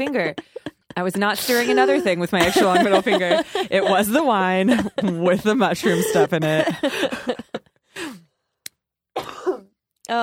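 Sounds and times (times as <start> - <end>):
speech: 0.0 - 7.3
laughter: 0.0 - 7.8
harsh coughing: 1.4 - 4.0, 4.9 - 7.5, 9.2 - 9.8.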